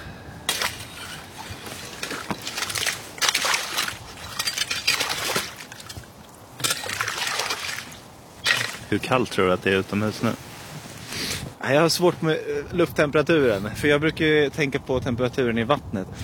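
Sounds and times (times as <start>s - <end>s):
slushy ice chunks pushed in ice hole: 0.4s - 11.1s
speech: 8.9s - 10.5s, 11.6s - 16.2s.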